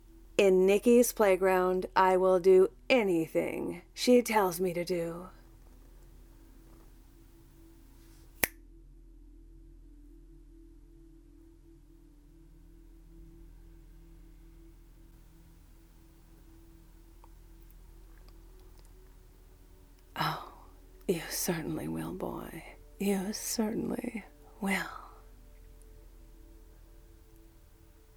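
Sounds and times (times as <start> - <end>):
speech: 0.4 - 5.4, 21.1 - 25.0
finger snap: 8.2 - 8.6.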